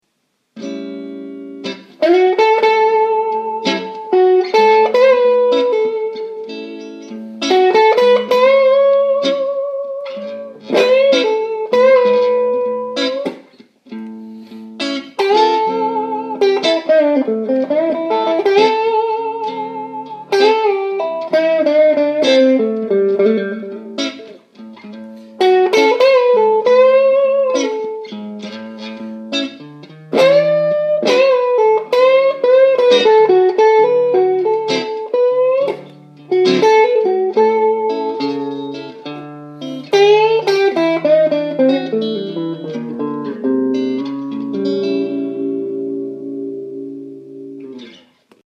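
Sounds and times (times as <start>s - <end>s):
blues guitar playing major and minor pentatonic scales: 0.1s - 48.4s.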